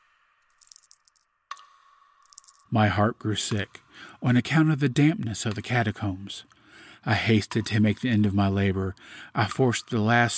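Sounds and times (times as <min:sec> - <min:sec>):
small bells jingling: 0:00.5 - 0:01.2, 0:02.3 - 0:02.7
speech: 0:02.7 - 0:10.3.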